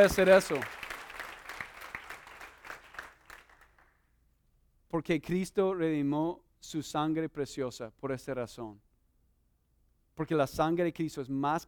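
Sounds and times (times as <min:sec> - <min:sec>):
speech: 0:00.0 - 0:00.8, 0:04.9 - 0:08.8, 0:10.2 - 0:11.6
audience applause: 0:00.0 - 0:03.8.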